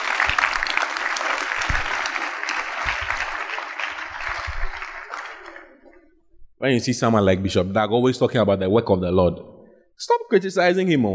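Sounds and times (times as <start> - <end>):
audience clapping: 0.0 - 6.1
speech: 6.6 - 11.1.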